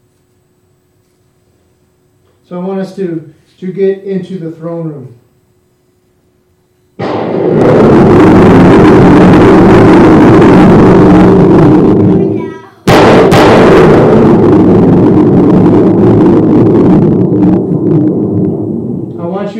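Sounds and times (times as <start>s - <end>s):
speech: 2.5s - 5.2s
thunder sound effect: 7.0s - 19.5s.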